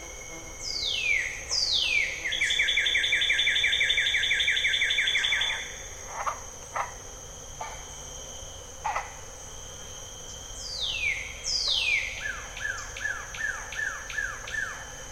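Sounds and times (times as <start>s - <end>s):
steady high insect hum: 0.0s - 15.0s
bird-voiced treefrogs calling in Jessamine Bayou cypress swamp: 0.6s - 6.9s, 10.6s - 15.0s.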